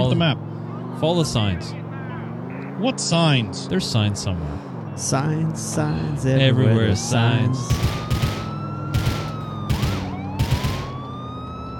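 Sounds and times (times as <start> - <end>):
police car siren in a video game: 0.0 - 2.9, 6.2 - 11.7
speech: 0.2 - 1.8, 2.8 - 8.3.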